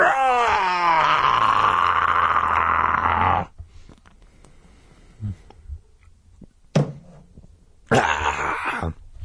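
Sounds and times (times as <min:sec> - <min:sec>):
loud rasping monstrous roar: 0:00.0 - 0:03.5
faint grunts: 0:07.9 - 0:09.0.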